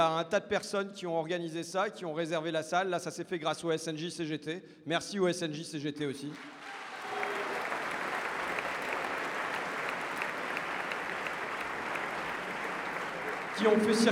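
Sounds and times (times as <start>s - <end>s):
speech: 0.0s - 6.8s, 13.6s - 14.1s
audience applause: 6.4s - 14.1s.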